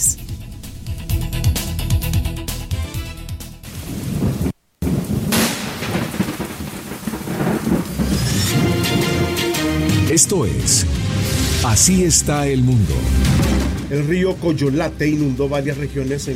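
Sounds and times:
deep thunder rumbling: 0:00.0 - 0:11.6
heavy rain: 0:03.6 - 0:10.3
speech: 0:10.2 - 0:16.3.

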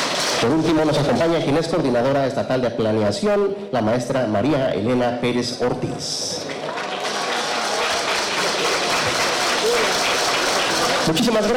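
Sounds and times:
audience applause: 0:00.0 - 0:01.3, 0:06.3 - 0:11.5
speech: 0:00.4 - 0:06.6, 0:11.1 - 0:11.5.

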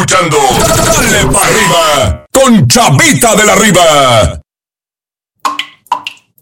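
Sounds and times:
speech: 0:00.1 - 0:04.4
water dripping from a leak: 0:05.4 - 0:06.4.

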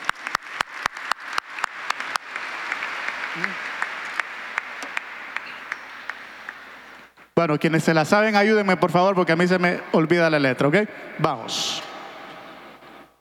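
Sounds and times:
audience applause: 0:00.0 - 0:07.1
speech: 0:03.4 - 0:03.7, 0:07.4 - 0:11.9.

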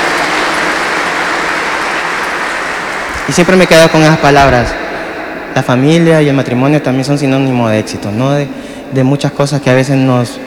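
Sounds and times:
audience applause: 0:00.0 - 0:04.7
speech: 0:03.3 - 0:04.8, 0:05.6 - 0:10.4.

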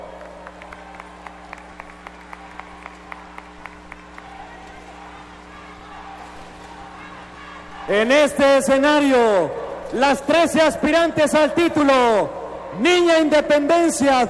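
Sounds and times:
audience applause: 0:00.0 - 0:08.0
crowd murmur: 0:00.0 - 0:08.3, 0:09.2 - 0:10.0, 0:12.0 - 0:12.8
speech: 0:07.9 - 0:14.2.

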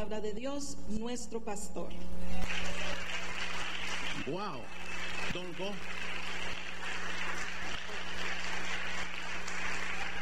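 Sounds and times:
speech: 0:00.0 - 0:03.0, 0:04.2 - 0:06.2
low electrical hum: 0:00.0 - 0:10.2
audience applause: 0:02.4 - 0:10.2.

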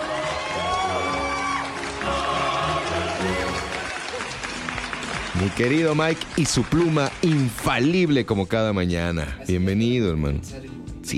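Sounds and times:
applause: 0:00.0 - 0:08.4
speech: 0:05.4 - 0:11.1.

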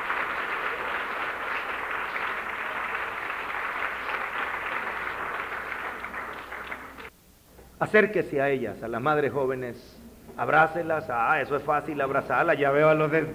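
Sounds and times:
crowd applause: 0:00.0 - 0:07.1
speech: 0:07.8 - 0:13.3.

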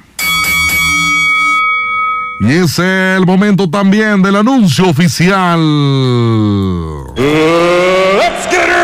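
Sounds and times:
loud bell struck: 0:00.0 - 0:03.4
speech: 0:02.4 - 0:08.7.

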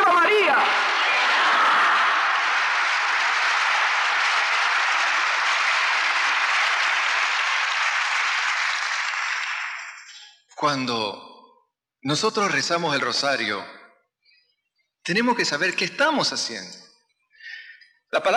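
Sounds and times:
audience applause from a large crowd: 0:00.0 - 0:10.3
speech: 0:10.6 - 0:11.3, 0:12.0 - 0:13.8, 0:15.1 - 0:16.9, 0:18.1 - 0:18.3.

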